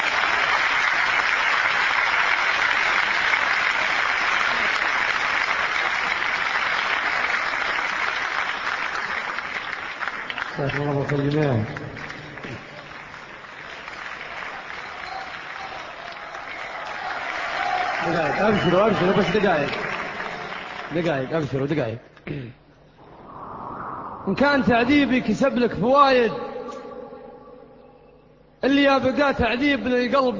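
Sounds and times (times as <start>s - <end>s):
audience applause at an Arabic poetry recitation: 0.0s - 21.4s
speech: 11.1s - 11.8s, 18.4s - 19.8s, 20.9s - 22.6s, 24.2s - 26.4s, 28.9s - 30.3s.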